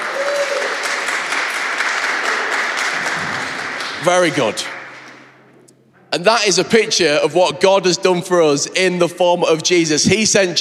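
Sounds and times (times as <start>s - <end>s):
audience applause: 0.0s - 5.4s
speech: 4.0s - 4.8s, 6.2s - 10.5s.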